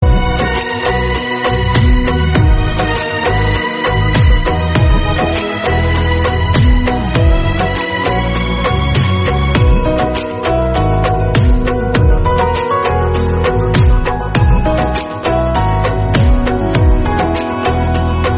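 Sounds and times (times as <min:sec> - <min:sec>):
instrumental music: 0:00.0 - 0:18.3.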